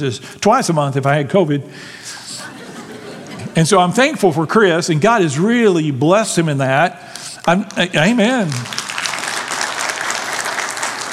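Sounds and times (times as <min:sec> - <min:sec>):
speech: 0:00.0 - 0:02.3, 0:03.6 - 0:08.8
laughter: 0:02.1 - 0:04.2
audience applauding: 0:07.4 - 0:11.1.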